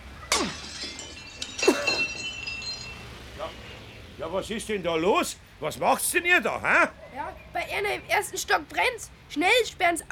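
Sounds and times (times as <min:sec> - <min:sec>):
workshop window glass shattering from a thrown paving stone: 0:00.3 - 0:03.4
glass shards tinkling: 0:00.3 - 0:03.7
speech: 0:04.3 - 0:10.0.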